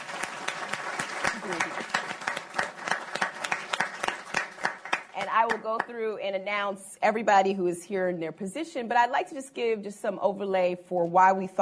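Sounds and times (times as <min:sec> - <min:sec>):
audience applause: 0:00.0 - 0:05.2
speech: 0:05.4 - 0:11.5.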